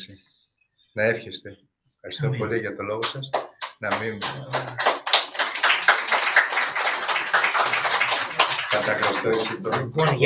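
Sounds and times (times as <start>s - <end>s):
speech: 0.0s - 0.3s, 1.0s - 5.0s, 8.7s - 10.2s
audience applause: 3.9s - 10.2s.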